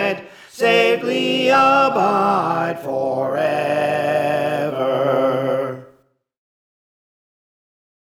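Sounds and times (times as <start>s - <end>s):
soprano singing: 0.0s - 5.9s.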